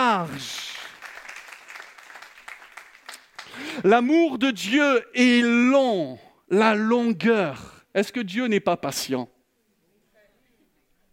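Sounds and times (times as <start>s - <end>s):
congregation clapping during a French-language church sermon: 0.0s - 3.8s
speech: 0.2s - 0.7s, 3.8s - 9.3s.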